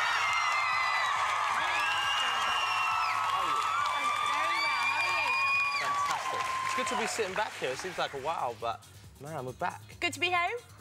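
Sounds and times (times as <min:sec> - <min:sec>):
audience screaming and cheering: 0:00.0 - 0:08.3
speech: 0:06.9 - 0:10.7.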